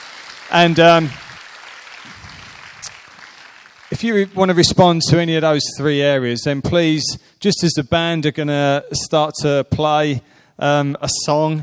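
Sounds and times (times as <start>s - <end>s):
congregation at a church service applauding a speaker: 0.0s - 5.7s
speech: 0.5s - 1.2s, 4.0s - 11.6s.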